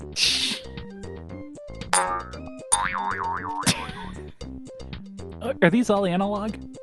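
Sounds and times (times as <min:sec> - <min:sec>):
speech: 0:00.2 - 0:00.4, 0:05.4 - 0:06.6
springy mattress boing effects: 0:02.0 - 0:03.8.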